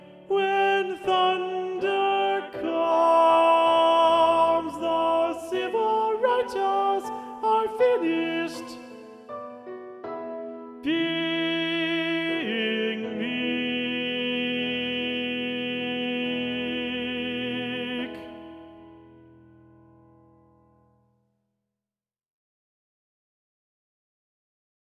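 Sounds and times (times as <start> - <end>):
alto voice singing in SATB choir: 0.0 - 9.9, 10.7 - 18.8.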